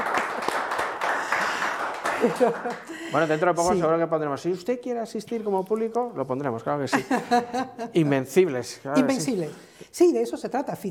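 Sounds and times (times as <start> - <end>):
audience applause: 0.0 - 3.4
laughter: 2.0 - 3.4, 6.8 - 8.1
speech: 2.2 - 10.8.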